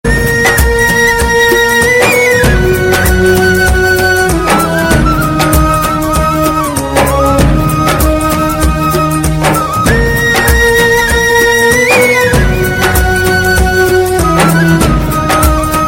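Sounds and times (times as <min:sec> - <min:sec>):
flute: 0:00.0 - 0:15.8.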